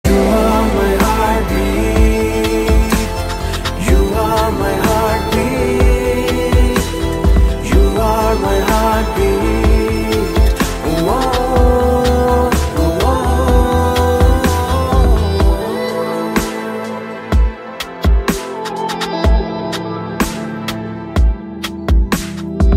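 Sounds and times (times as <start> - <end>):
background music ringtone: 0.0 - 22.7.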